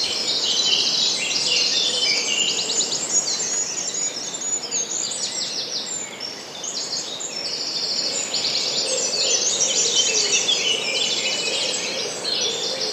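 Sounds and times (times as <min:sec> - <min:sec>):
dawn chorus bird song in woods: 0:00.0 - 0:12.9.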